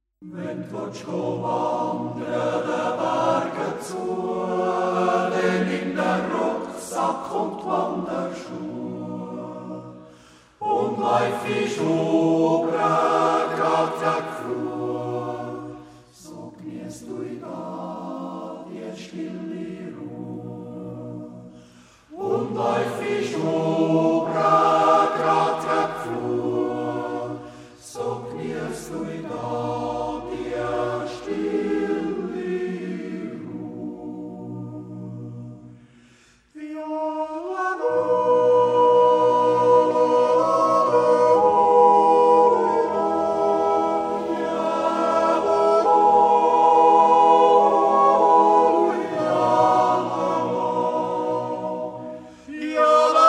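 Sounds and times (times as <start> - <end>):
yodel group singing: 0.2 - 53.2.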